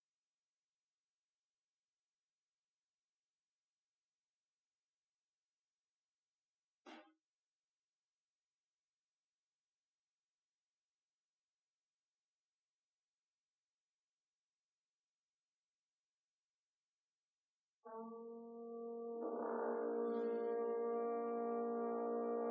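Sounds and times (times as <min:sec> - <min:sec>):
group musical improvisation: 0:17.9 - 0:22.4.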